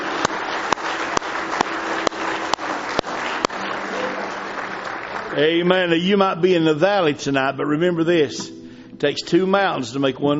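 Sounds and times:
audience clapping in praise: 0:00.0 - 0:06.4
speech: 0:05.4 - 0:10.3.

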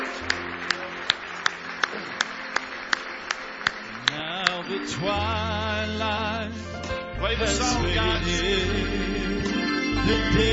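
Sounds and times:
audience hand clapping: 0:00.0 - 0:05.1
speech: 0:04.8 - 0:09.4, 0:10.0 - 0:10.5.

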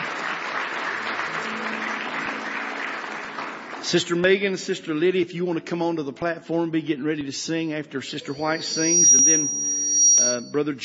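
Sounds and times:
congregation applause during an evening church service: 0:00.0 - 0:05.1
speech: 0:03.8 - 0:09.6, 0:10.2 - 0:10.8.

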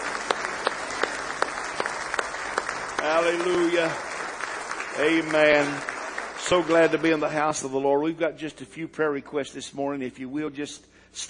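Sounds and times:
audience clapping hands: 0:00.0 - 0:08.1
speech: 0:03.0 - 0:04.1, 0:05.0 - 0:05.9, 0:06.5 - 0:11.2.

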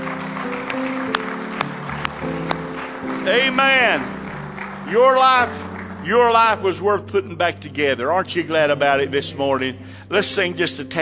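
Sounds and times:
crowd clapping in praise: 0:00.0 - 0:06.9
organ-like chords: 0:00.0 - 0:10.9
speech: 0:03.3 - 0:04.2, 0:04.9 - 0:10.9.

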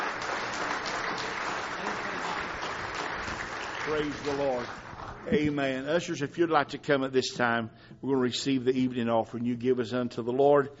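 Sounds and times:
audience hand clapping: 0:00.0 - 0:05.8
speech: 0:03.9 - 0:10.7.

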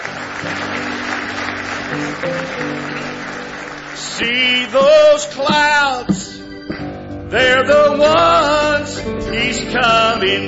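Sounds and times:
audience hand clapping: 0:00.0 - 0:06.2
speech: 0:00.4 - 0:00.8, 0:01.9 - 0:03.1, 0:04.2 - 0:06.4, 0:07.3 - 0:10.4.

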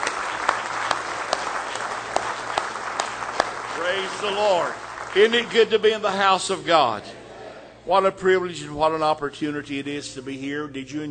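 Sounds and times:
audience hand clapping in praise: 0:00.0 - 0:06.6
speech: 0:03.9 - 0:07.2, 0:07.9 - 0:11.0.

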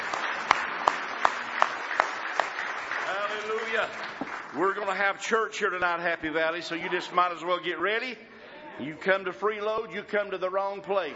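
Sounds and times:
crowd clapping hands in praise: 0:00.0 - 0:05.7
speech: 0:03.7 - 0:11.1.

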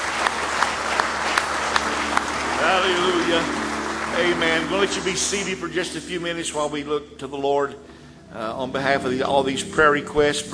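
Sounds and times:
audience clapping hands in praise: 0:00.0 - 0:06.7
speech: 0:02.8 - 0:03.6, 0:04.2 - 0:10.5.

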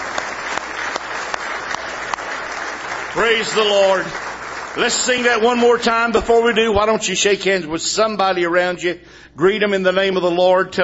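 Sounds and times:
audience hand clapping applause: 0:00.0 - 0:07.0
speech: 0:03.2 - 0:10.8.

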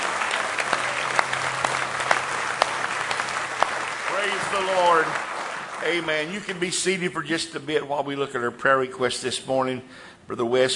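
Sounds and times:
audience hand clapping: 0:00.0 - 0:07.0
speech: 0:04.5 - 0:10.7.

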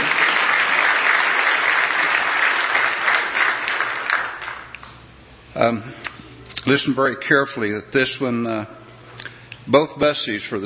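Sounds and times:
audience applause: 0:00.0 - 0:04.8
speech: 0:05.6 - 0:08.8, 0:09.7 - 0:10.6.

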